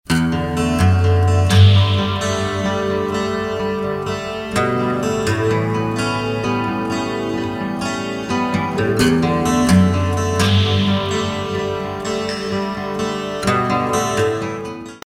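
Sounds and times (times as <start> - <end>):
new age music: 0.6 - 14.9.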